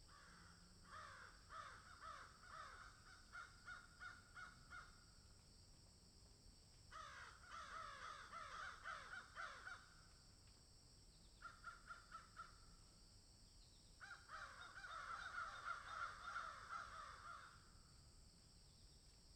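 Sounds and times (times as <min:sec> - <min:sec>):
several crows cawing in a field: 0:00.1 - 0:05.0, 0:06.9 - 0:10.0, 0:11.4 - 0:12.6, 0:14.0 - 0:17.7.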